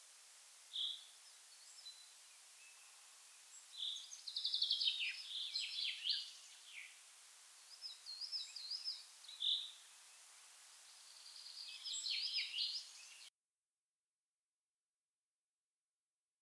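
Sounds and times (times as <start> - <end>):
Common chaffinch singing, Fringilla coelebs: 0.7 - 7.0, 7.6 - 13.3.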